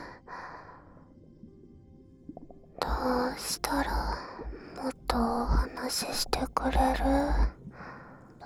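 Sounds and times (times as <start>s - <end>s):
relaxing ear licking: 2.8s - 7.6s.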